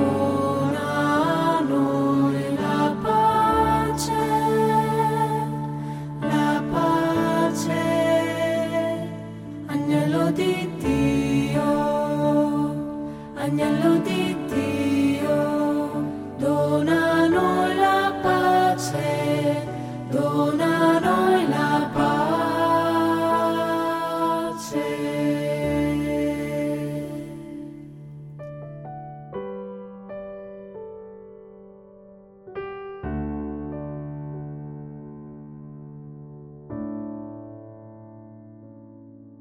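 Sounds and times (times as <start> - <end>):
lead voice singing a mass movement: 0.0 - 27.7.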